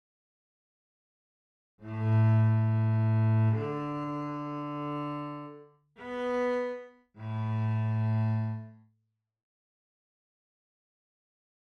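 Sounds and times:
cello: 1.8 - 8.9.

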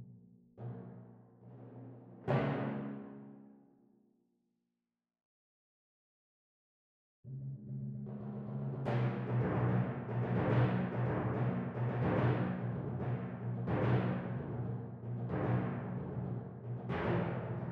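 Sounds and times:
timpani: 0.6 - 3.4, 8.0 - 17.7.

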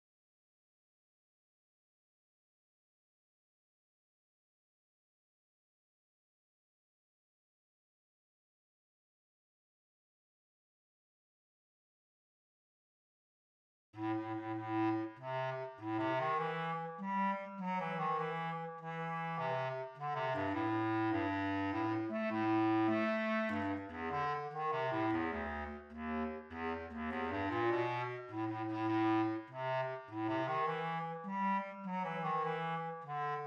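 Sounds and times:
bass clarinet: 14.0 - 33.4.

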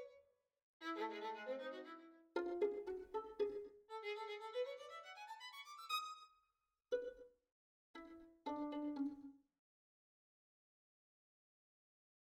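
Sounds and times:
violin: 0.0 - 0.2, 0.8 - 7.3, 8.0 - 9.4.

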